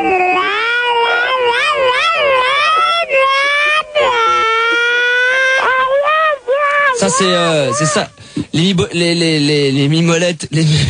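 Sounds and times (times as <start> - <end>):
voice imitating a sci-fi moped engine: 0.0 - 8.1
speech: 7.0 - 10.8.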